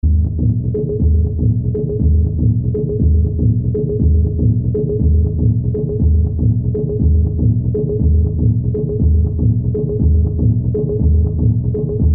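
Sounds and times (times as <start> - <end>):
drums: 0.0 - 12.1.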